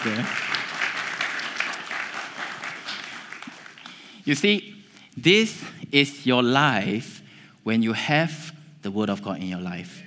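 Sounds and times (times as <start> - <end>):
speech: 0.0 - 0.6, 4.2 - 10.0
audience applause: 0.0 - 4.1.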